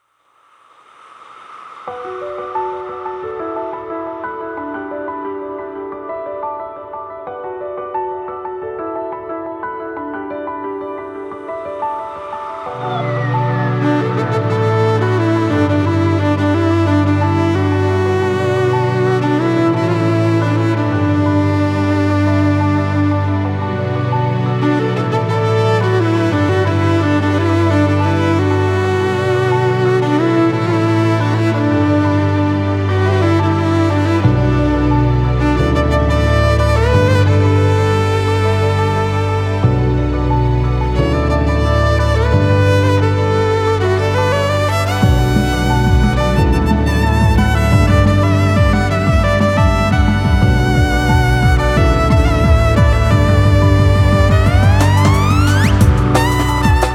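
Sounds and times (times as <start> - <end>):
crazy adventure violin music: 10.1 - 56.9.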